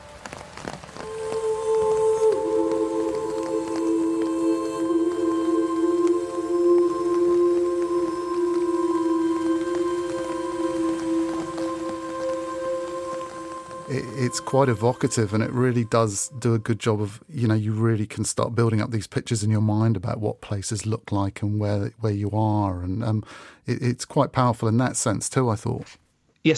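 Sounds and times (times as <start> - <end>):
sustained low musical tones: 0.0 - 18.0
steady rain pattering: 0.0 - 25.8
speech: 14.3 - 26.5.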